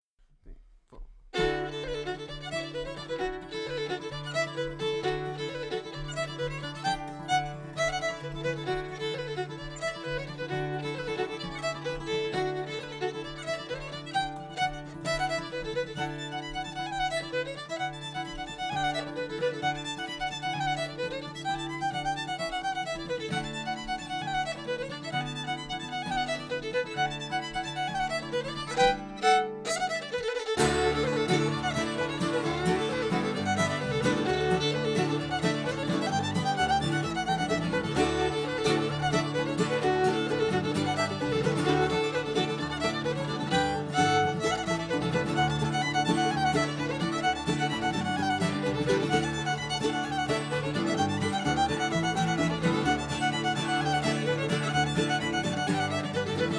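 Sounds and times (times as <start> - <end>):
bluegrass band playing an Irish tune: 1.4 - 56.5.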